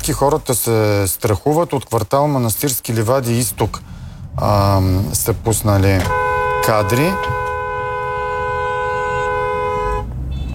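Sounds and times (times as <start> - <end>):
speech: 0.0 - 7.4
car horn honking: 5.8 - 10.5.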